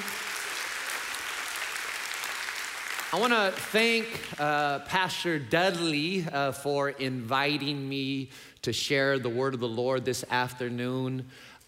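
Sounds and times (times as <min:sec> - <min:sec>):
audience applause at a church service: 0:00.0 - 0:04.4
speech: 0:03.1 - 0:11.6.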